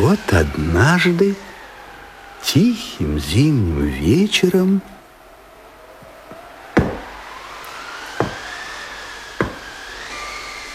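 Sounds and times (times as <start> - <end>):
speech: 0.0 - 1.5, 2.4 - 4.9
thin whistling tone: 6.4 - 10.7
knocking on a door: 6.8 - 7.1, 8.2 - 8.4, 9.4 - 9.7.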